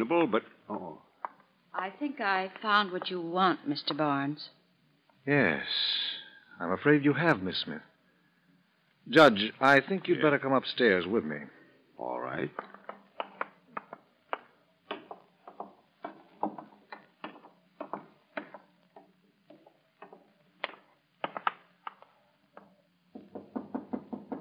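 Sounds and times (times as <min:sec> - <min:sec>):
speech: 0:00.0 - 0:01.1, 0:01.8 - 0:04.6, 0:05.2 - 0:07.9, 0:09.0 - 0:12.7
knocking on a door: 0:14.9 - 0:18.6, 0:23.2 - 0:24.3.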